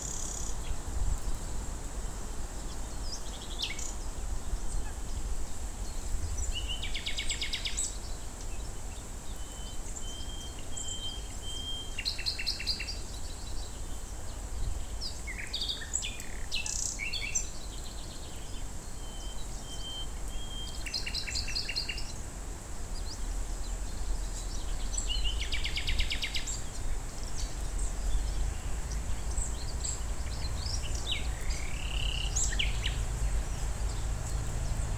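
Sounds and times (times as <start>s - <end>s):
common nightingale song: 0.0s - 34.9s.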